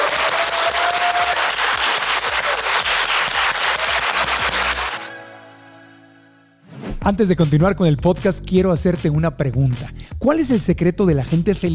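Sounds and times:
audience applause: 0:00.0 - 0:05.0
speech: 0:07.1 - 0:11.7.

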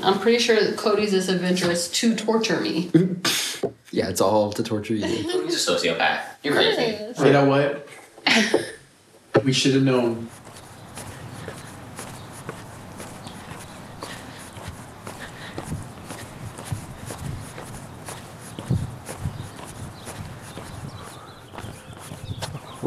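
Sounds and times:
speech: 0:00.0 - 0:08.7, 0:09.4 - 0:10.4
footsteps on a walk: 0:09.4 - 0:22.8.

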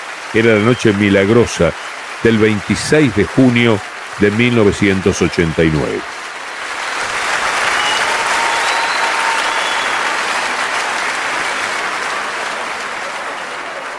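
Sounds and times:
large concert audience applause: 0:00.0 - 0:13.9
speech: 0:00.3 - 0:06.1.

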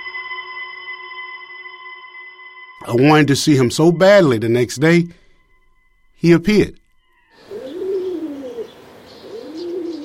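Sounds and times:
speech: 0:02.8 - 0:05.2, 0:06.2 - 0:06.8
pigeons cooing: 0:07.3 - 0:10.0.

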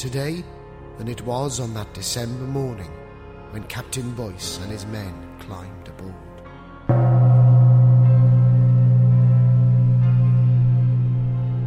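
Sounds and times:
speech: 0:00.0 - 0:06.3
gong being struck: 0:06.9 - 0:11.6.

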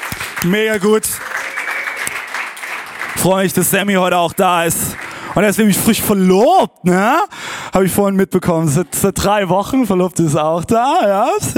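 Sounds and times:
audience applause for the band: 0:00.0 - 0:05.8
speech: 0:00.4 - 0:01.3, 0:03.2 - 0:11.5.

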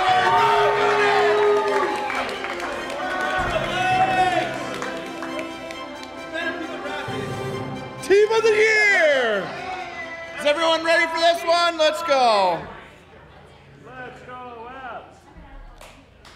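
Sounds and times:
crowd applause and cheering: 0:00.0 - 0:12.7
speech: 0:10.5 - 0:12.7.

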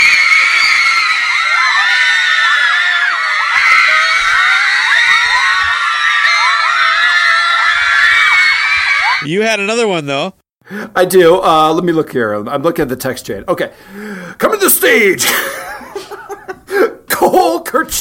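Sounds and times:
large crowd of fans screaming: 0:00.0 - 0:09.2
speech: 0:09.3 - 0:15.8, 0:17.2 - 0:17.9
laughter: 0:15.2 - 0:17.0.

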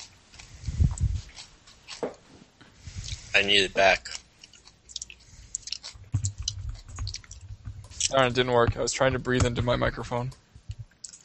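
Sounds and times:
person eating, chewing food near microphone: 0:00.0 - 0:08.2, 0:10.8 - 0:11.2
speech: 0:03.4 - 0:04.2, 0:08.1 - 0:10.4.

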